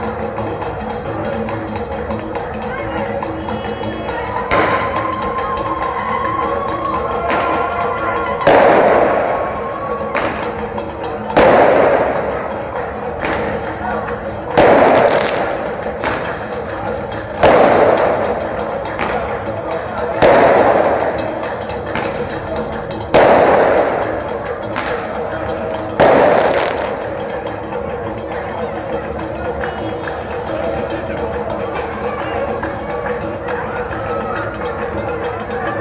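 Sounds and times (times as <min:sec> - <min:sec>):
wedding ambience in Oran: 0:00.0 - 0:35.7.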